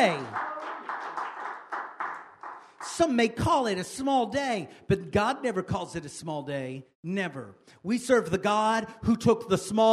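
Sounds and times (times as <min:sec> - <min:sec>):
speech: 0:00.0 - 0:00.7, 0:03.0 - 0:09.9
group of people clapping their hands: 0:00.0 - 0:03.5.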